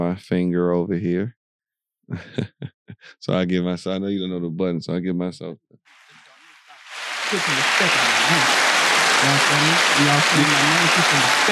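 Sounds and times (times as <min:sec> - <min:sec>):
speech: 0:00.0 - 0:01.4, 0:02.1 - 0:06.1, 0:07.3 - 0:11.5
laughter: 0:02.1 - 0:03.3, 0:07.0 - 0:11.5
crowd cheering: 0:06.1 - 0:11.5
loud long applause: 0:06.1 - 0:11.5.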